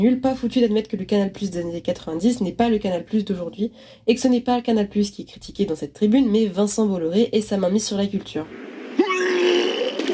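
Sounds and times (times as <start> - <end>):
speech: 0.0 - 8.7
person vomiting: 9.0 - 10.0.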